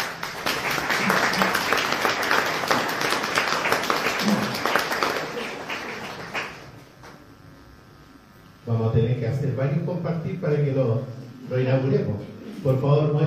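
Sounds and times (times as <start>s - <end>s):
audience applause: 0.0s - 7.2s
speech: 9.5s - 13.2s.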